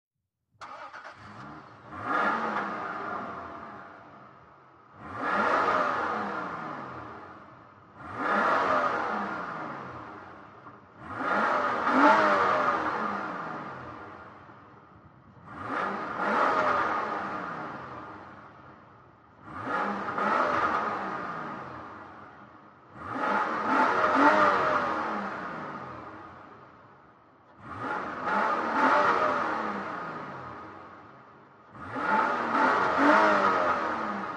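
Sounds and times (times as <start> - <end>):
SUV engine starting: 0.6 - 2.9
SUV engine revving: 0.6 - 14.4, 15.4 - 18.5, 19.4 - 26.5, 27.5 - 31.0, 31.7 - 34.3.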